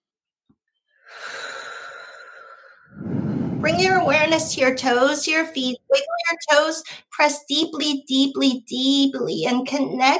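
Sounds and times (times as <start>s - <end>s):
deep breath during a guided relaxation exercise: 0.9s - 4.2s
speech: 3.6s - 10.1s.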